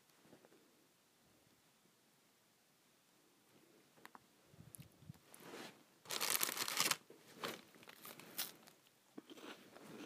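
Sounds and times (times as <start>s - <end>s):
person crunching saltine crackers: 6.1s - 8.8s.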